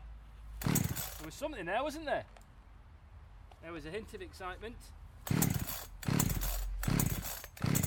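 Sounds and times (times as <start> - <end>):
petrol engine being pulled to start: 0.6 - 1.3, 5.3 - 7.8
speech: 1.3 - 2.4, 3.6 - 5.4.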